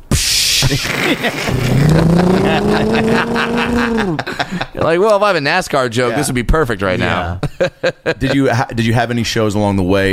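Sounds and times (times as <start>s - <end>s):
laughter: 0.7s - 5.0s, 7.2s - 8.5s
speech: 0.7s - 10.1s
voice imitating a bus driving by: 1.5s - 4.2s.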